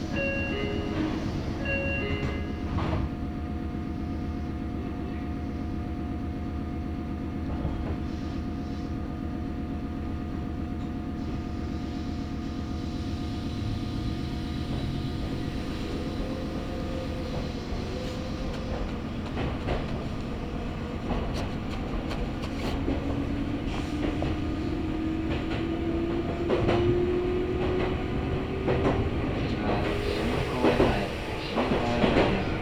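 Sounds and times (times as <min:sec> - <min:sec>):
Meitetsu Kakamigahara Line local train rumbling: 0:00.0 - 0:32.5.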